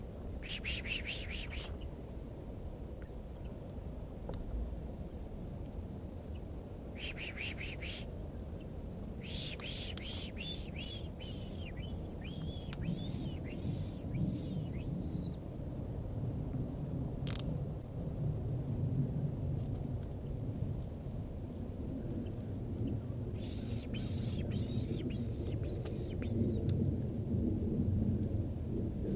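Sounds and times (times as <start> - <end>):
low rumble of wind-like noise: 0.0 - 29.1
wild birds calling outdoors: 0.4 - 2.0, 6.3 - 15.4, 22.2 - 26.6.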